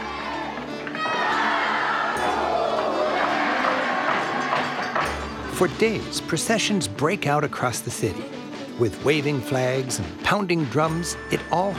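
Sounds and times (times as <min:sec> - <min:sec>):
crowd cheering for their neighborhood: 0:00.0 - 0:05.9
speech: 0:05.6 - 0:11.7.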